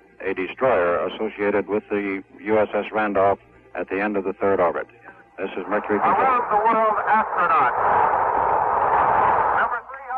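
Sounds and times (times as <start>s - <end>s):
speech: 0.2s - 8.3s
crowd cheering: 5.7s - 9.7s.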